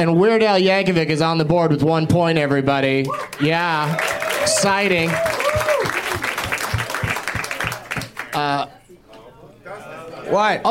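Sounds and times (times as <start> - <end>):
speech: 0.0 - 6.0, 8.4 - 8.8, 10.3 - 10.6
audience applause: 3.2 - 8.6.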